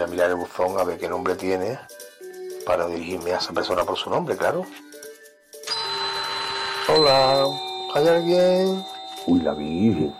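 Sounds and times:
speech: 0.0s - 2.0s, 2.6s - 4.9s, 6.9s - 10.1s
broken doorbell ringing: 5.7s - 10.1s.

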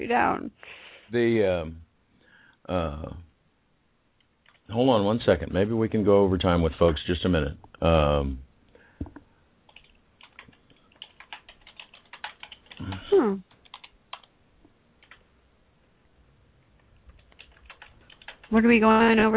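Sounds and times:
speech: 0.0s - 1.8s, 2.7s - 3.3s, 4.7s - 8.4s, 12.8s - 13.5s, 18.5s - 19.3s
computer keyboard typing: 9.0s - 14.3s, 15.0s - 15.2s, 16.8s - 19.3s.

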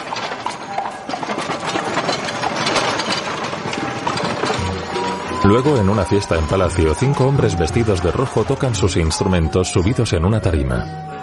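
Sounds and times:
horse-drawn carriage hooves clip-clopping along a street: 0.0s - 9.4s
street noise: 0.0s - 11.2s
speech: 5.4s - 11.2s.

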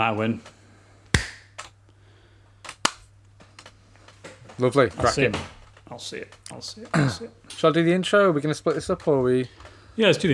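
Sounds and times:
speech: 0.0s - 0.6s, 4.6s - 10.3s
hand clap as a recording marker: 1.2s - 1.5s.

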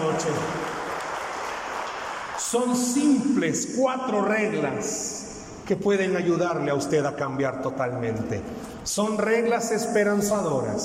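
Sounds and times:
audience applause: 0.0s - 2.9s
speech: 0.2s - 0.8s, 2.5s - 10.8s.

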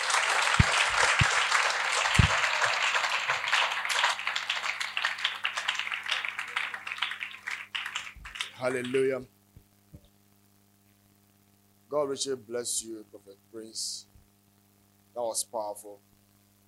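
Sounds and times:
audience clapping and applauding: 0.0s - 9.2s
speech: 8.6s - 9.4s, 11.9s - 14.1s, 15.2s - 16.1s.

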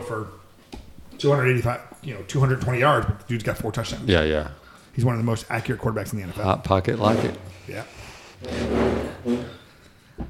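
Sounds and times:
speech: 0.1s - 0.4s, 1.2s - 9.6s
chairs being dragged across the floor: 6.9s - 9.7s.

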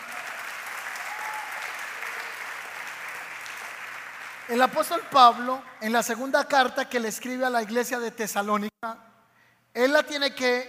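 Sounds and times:
audience applauding: 0.0s - 5.0s
speech: 4.5s - 9.1s, 9.8s - 10.6s.

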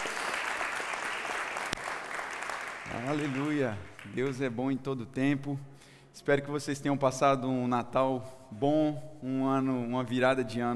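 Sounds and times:
audience applause: 0.0s - 4.2s
speech: 2.9s - 10.7s.

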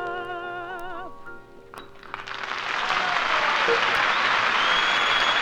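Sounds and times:
concert audience applause: 1.9s - 5.4s.

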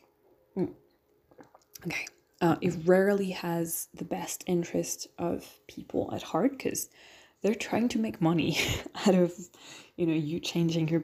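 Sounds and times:
speech: 0.6s - 0.8s, 1.8s - 11.0s
person gulping a sip of tea: 0.6s - 2.2s.

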